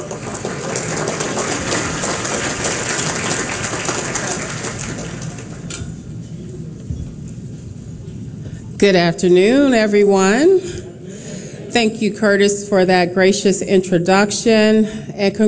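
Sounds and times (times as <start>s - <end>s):
audience applause: 0.0s - 5.7s
speech: 8.8s - 10.8s, 11.8s - 15.4s.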